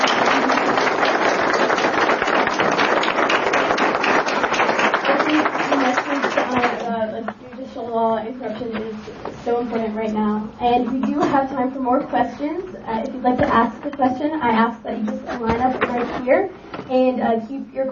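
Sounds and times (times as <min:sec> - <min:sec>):
audience applause: 0:00.0 - 0:06.9
person talking: 0:05.1 - 0:17.9.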